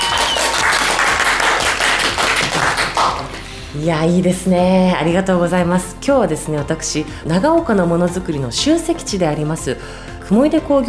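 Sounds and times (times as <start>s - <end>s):
hand clapping: 0.0s - 3.5s
speech: 3.8s - 10.8s.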